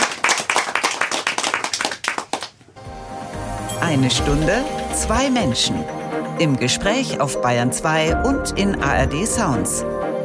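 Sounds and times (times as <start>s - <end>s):
audience applauding: 0.0s - 2.6s
speech: 3.9s - 10.0s.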